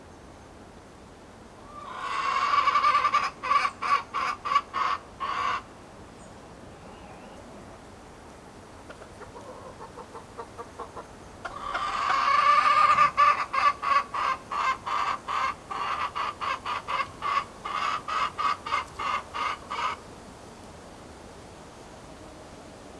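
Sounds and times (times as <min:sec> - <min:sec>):
chicken cackling: 0:01.6 - 0:05.7, 0:08.8 - 0:20.0.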